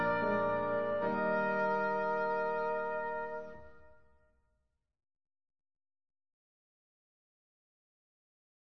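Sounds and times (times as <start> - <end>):
instrumental hymn: 0.0 - 4.0.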